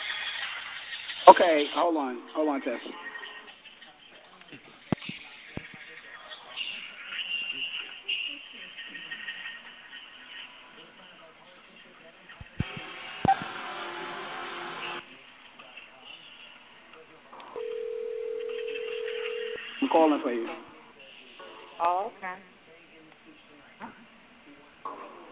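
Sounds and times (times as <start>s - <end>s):
voices: 0.9s - 25.3s
speech: 1.3s - 3.1s, 20.2s - 20.6s
telephone dial tone: 17.6s - 19.6s.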